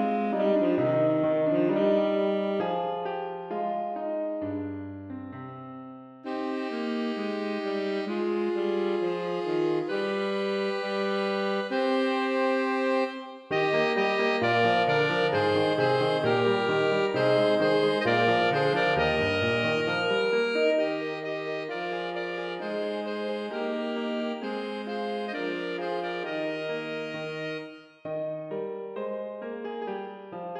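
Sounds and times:
two alto saxophones playing a dance: 0.0 - 3.3, 6.2 - 28.0
piano playing a dance: 0.0 - 30.5.

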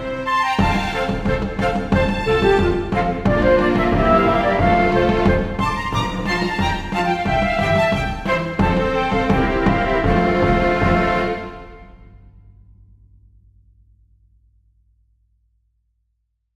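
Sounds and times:
march for flutes, strings and drums: 0.0 - 12.1.

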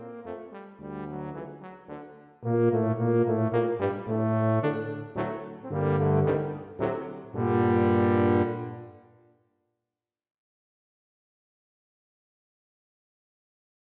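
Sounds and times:
tuba quartet playing a minuet: 0.0 - 9.0.

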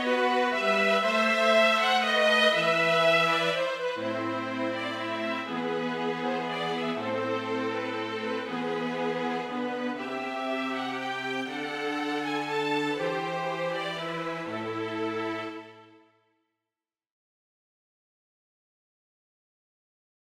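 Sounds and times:
string quartet playing a rondeau: 0.0 - 16.0.

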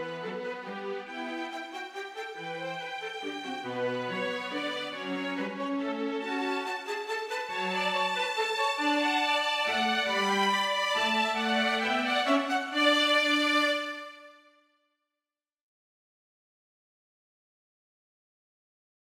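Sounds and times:
minuet for two violins and cello: 0.0 - 14.5.

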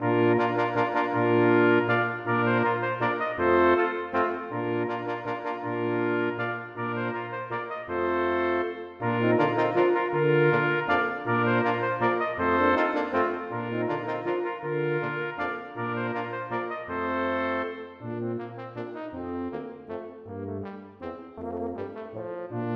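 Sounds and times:
brass quintet playing a minuet: 0.0 - 22.7.

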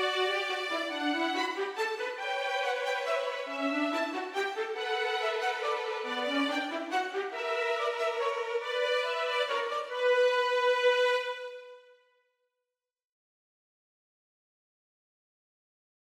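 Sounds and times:
minuet for violin duet: 0.0 - 11.9.

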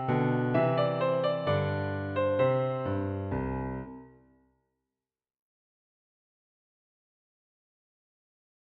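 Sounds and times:
march for piano: 0.0 - 4.2.

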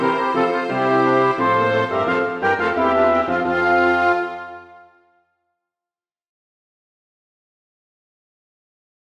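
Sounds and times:
trumpet with small orchestra: 0.0 - 5.3.

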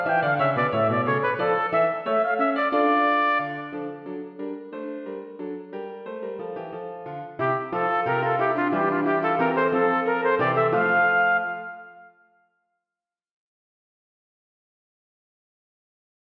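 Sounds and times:
trumpet playing a passepied: 0.0 - 4.0, 7.4 - 12.4
piano: 0.0 - 12.4.

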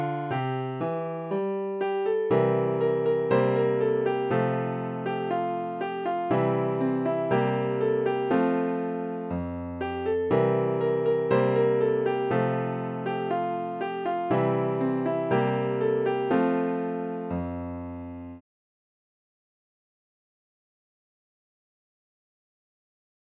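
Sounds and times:
piano: 0.0 - 18.4.

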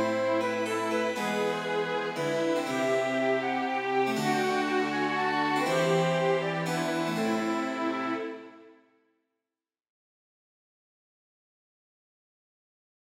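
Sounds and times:
rondeau for flute, violin, cello and harpsichord: 0.0 - 8.8.

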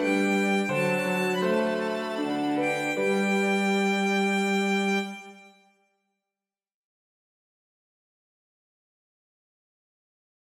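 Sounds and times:
minuet for violin cello and piano: 0.0 - 5.4.

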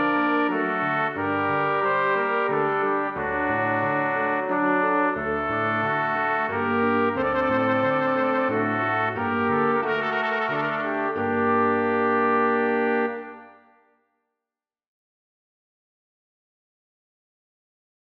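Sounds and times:
two trumpets: 0.0 - 13.7
piano: 0.0 - 13.8
horn: 0.0 - 13.9.

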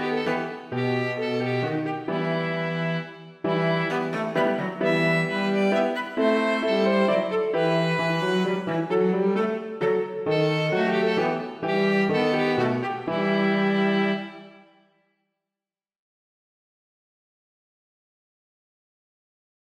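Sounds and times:
piano trio minuet: 0.0 - 14.4.

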